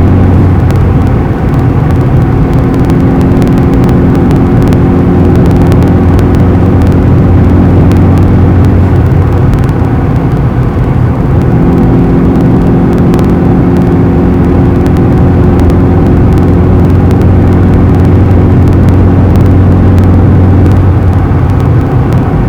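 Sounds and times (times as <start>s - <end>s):
car white noise: 0.0s - 22.4s.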